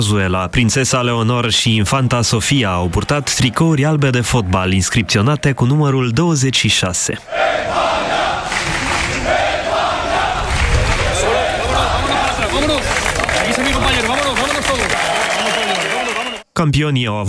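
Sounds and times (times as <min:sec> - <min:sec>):
speech: 0:00.0 - 0:07.8, 0:16.6 - 0:17.2
fans cheering and applauding: 0:02.5 - 0:05.4, 0:07.6 - 0:16.5.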